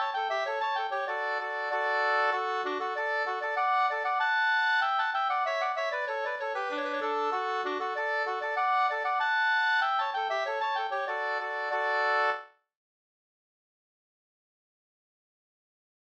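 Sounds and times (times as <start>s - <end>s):
folk dance music: 0.0s - 12.4s.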